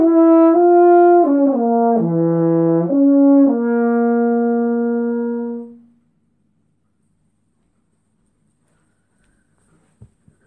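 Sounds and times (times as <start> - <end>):
French horn: 0.0 - 6.0.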